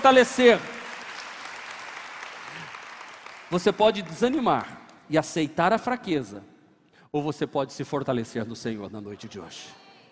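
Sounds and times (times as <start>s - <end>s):
speech: 0.0s - 0.7s, 3.5s - 6.5s, 7.1s - 9.8s
audience applause: 0.0s - 4.4s.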